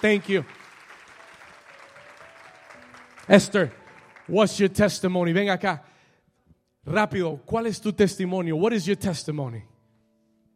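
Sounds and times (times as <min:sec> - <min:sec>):
speech: 0:00.0 - 0:00.6, 0:03.3 - 0:05.9, 0:06.8 - 0:09.7
audience applause: 0:00.0 - 0:04.6.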